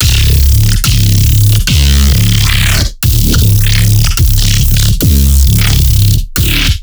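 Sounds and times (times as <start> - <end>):
neuro bass: 0.0 - 6.8.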